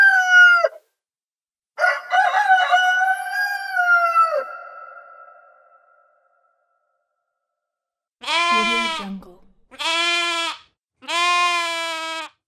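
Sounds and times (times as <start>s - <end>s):
village animals: 0.0s - 0.8s, 1.8s - 6.4s, 8.2s - 10.5s.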